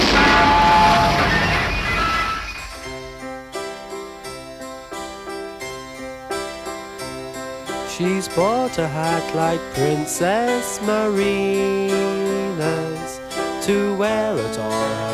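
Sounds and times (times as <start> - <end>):
explosion sound effect: 0.0 - 3.0
bright tinkling musical notes: 0.1 - 15.1
speech: 8.0 - 15.1.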